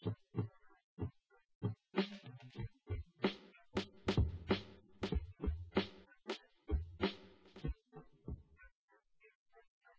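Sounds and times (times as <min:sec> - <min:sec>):
instrumental with drums: 0:01.6 - 0:08.4.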